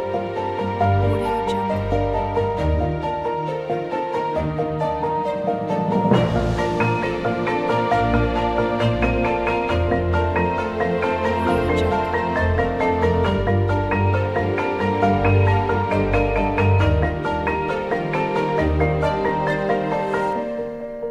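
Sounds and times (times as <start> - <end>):
inspiring piano music: 0.0 - 21.0.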